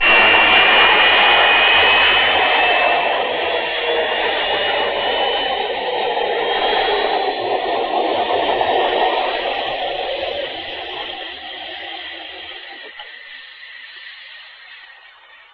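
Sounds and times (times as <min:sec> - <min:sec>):
aircraft taking off: 0:00.0 - 0:15.5.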